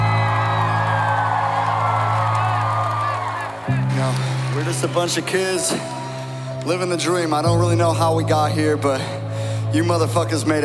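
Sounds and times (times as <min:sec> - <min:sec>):
audience applause: 0:00.0 - 0:06.5
speech: 0:04.0 - 0:06.0, 0:06.6 - 0:10.6.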